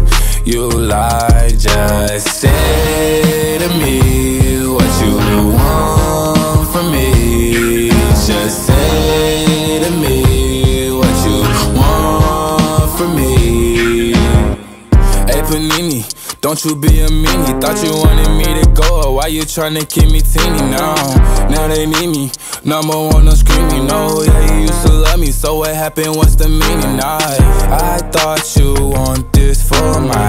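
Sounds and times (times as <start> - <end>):
hip hop dance remix: 0.0 - 30.2.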